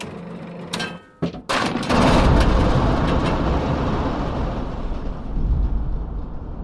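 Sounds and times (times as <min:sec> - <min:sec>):
theatre thunder machine rumbling: 0:01.6 - 0:06.6.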